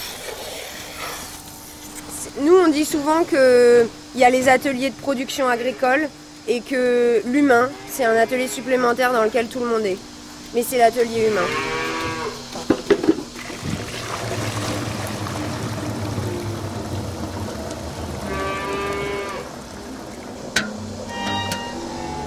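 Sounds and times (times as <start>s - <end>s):
steady farmyard hum: 0.0s - 22.2s
speech: 2.4s - 11.8s
cows lowing and mooing on a dairy farm: 11.2s - 12.4s, 18.0s - 19.6s, 21.0s - 22.2s
sharp metallic clanks: 20.5s - 22.2s.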